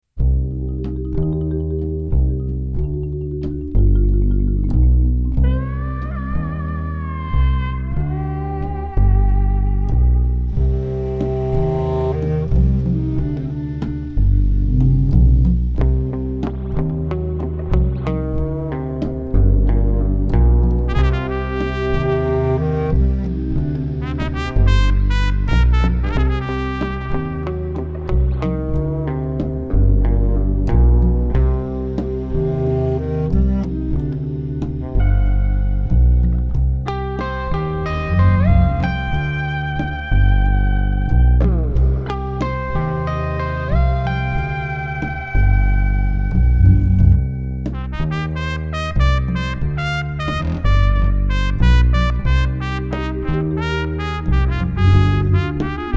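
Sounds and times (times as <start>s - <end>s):
cowboy music: 0.2s - 55.9s.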